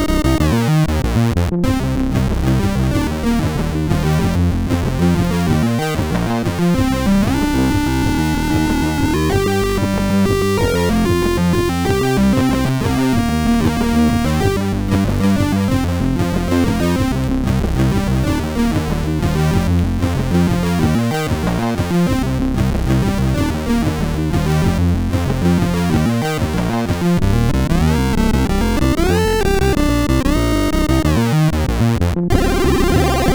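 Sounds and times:
rock music on a MOS6581R4 sound chip: 0:00.0 - 0:33.3.

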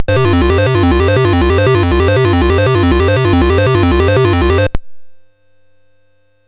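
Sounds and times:
SID MOS6581R4 chiptune music: 0:00.0 - 0:04.8.

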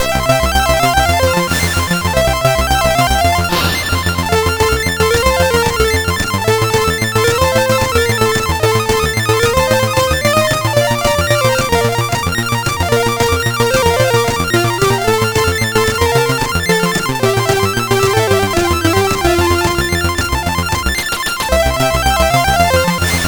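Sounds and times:
chiptune game music on a CSG8580R5 sound chip: 0:00.0 - 0:23.2.

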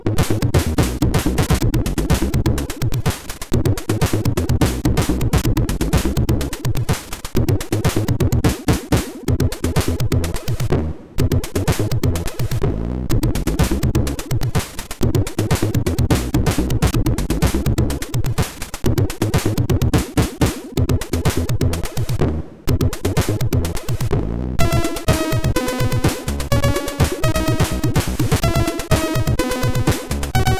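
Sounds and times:
funky SID MOS6581 chip music: 0:00.2 - 0:30.5.

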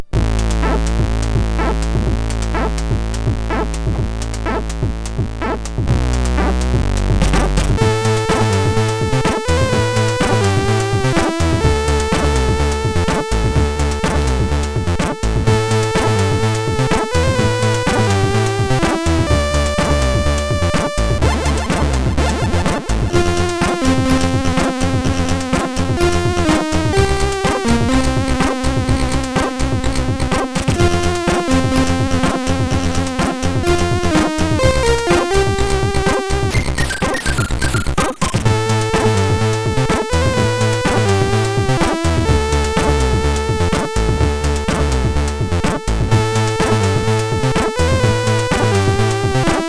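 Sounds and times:
SID chip MOS6581R4 music: 0:00.0 - 0:49.6.

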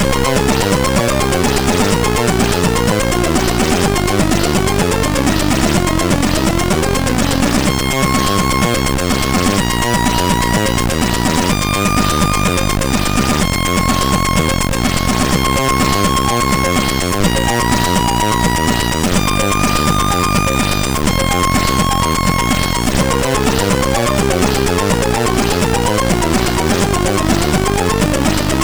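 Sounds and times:
trance music on a SID MOS6581R3 chip: 0:00.0 - 0:28.6.

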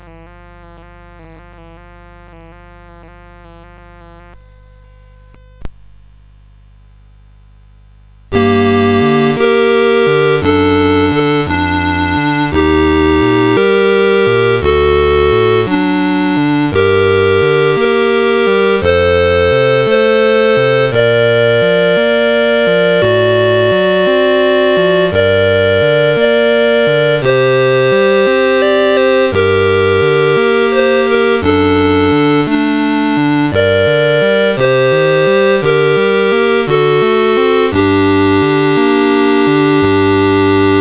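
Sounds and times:
Armenian lullaby on CSG8580 chip: 0:08.4 - 0:40.8.

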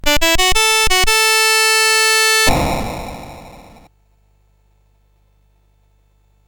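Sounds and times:
music on CSG8580R5 sound chip: 0:00.0 - 0:03.9.

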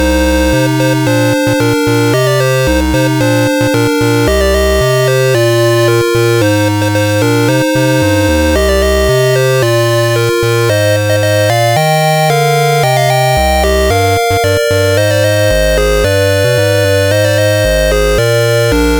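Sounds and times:
SID chiptune music on CSG8580R5 chip: 0:00.0 - 0:18.9.

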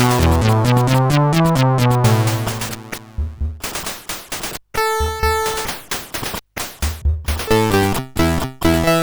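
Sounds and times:
chiptune remix on SID CSG8580R5 chip: 0:00.0 - 0:04.0, 0:04.8 - 0:06.3, 0:07.3 - 0:09.0.

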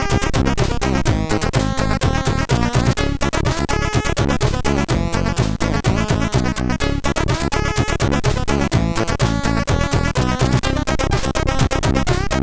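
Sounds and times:
MOS 6581R4 SID sound chip synthesizer: 0:00.0 - 0:12.4.

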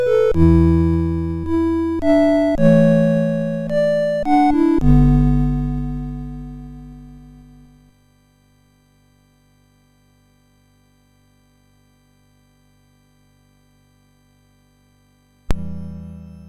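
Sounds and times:
SID chip MOS6581R4 music: 0:00.0 - 0:07.8.

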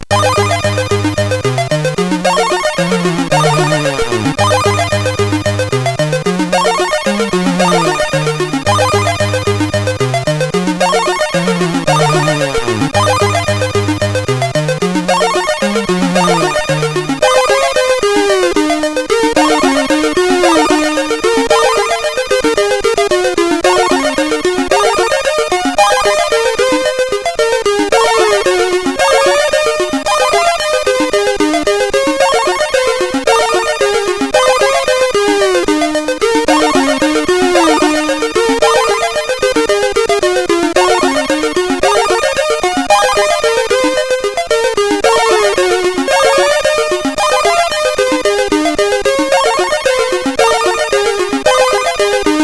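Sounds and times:
CSG8580R5 chip music: 0:00.0 - 0:52.4.

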